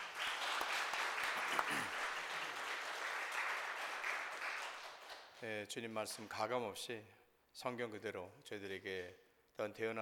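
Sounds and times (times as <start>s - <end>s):
audience applause: 0.0s - 5.0s
speech: 5.4s - 10.0s.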